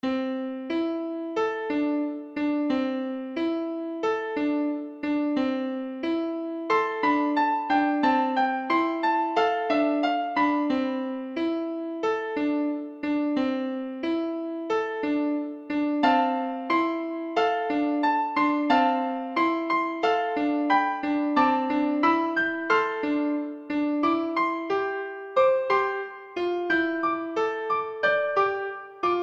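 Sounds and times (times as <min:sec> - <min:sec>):
piano: 0:00.0 - 0:29.2.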